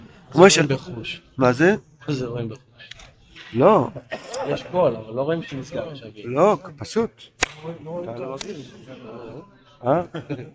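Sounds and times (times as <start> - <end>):
speech: 0.3 - 10.5
laughter: 3.4 - 5.9, 8.0 - 10.5
sharp hand claps: 7.4 - 7.8.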